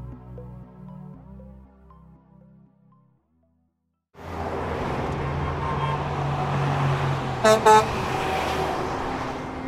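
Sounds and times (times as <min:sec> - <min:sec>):
city car traffic with engines rumbling: 0:04.2 - 0:09.6
car horn honks: 0:05.5 - 0:06.1, 0:07.4 - 0:08.0.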